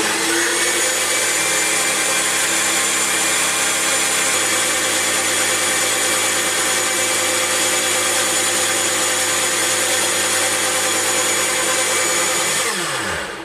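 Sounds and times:
kitchen blender mixing food: 0:00.0 - 0:13.4.

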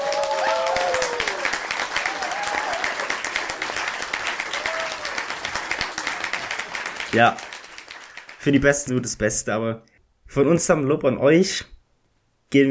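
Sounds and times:
short whistles and cheers: 0:00.0 - 0:03.2, 0:04.5 - 0:05.2
crowd applause: 0:00.0 - 0:08.6
speech: 0:07.1 - 0:07.5, 0:08.4 - 0:11.7.

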